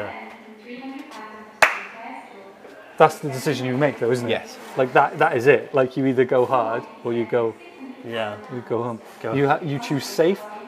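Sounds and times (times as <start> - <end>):
low murmur of voices: 0.0 - 10.6
single hand clap: 1.6 - 1.9
speech: 3.0 - 10.5.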